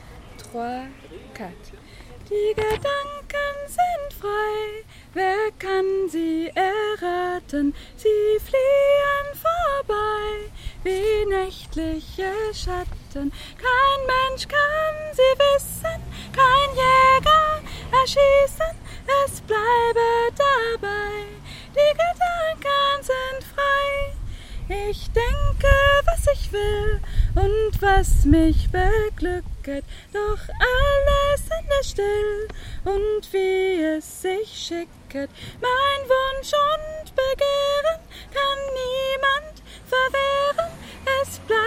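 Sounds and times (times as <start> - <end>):
sopranos singing: 1.7 - 41.6.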